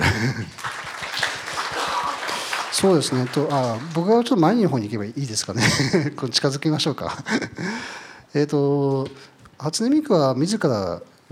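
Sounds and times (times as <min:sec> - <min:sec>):
laughter: 0:00.0 - 0:03.9, 0:05.6 - 0:06.2
applause: 0:00.0 - 0:04.6
speech: 0:02.8 - 0:11.3.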